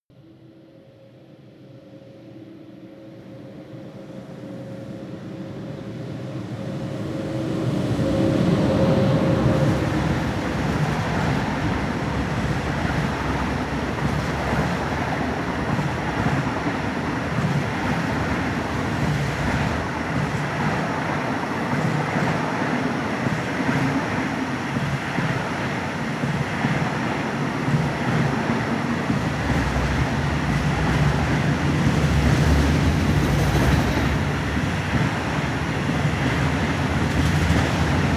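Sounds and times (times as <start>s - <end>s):
freight train driving by: 1.4s - 38.1s.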